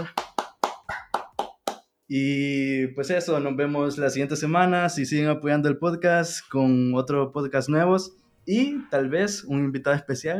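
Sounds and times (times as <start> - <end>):
applause: 0.0 - 1.8
speech: 2.1 - 10.3.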